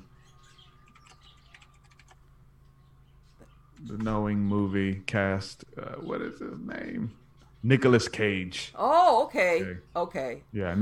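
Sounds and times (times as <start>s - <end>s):
rapid typing on a computer keyboard: 0.7s - 2.2s
speech: 3.8s - 10.8s.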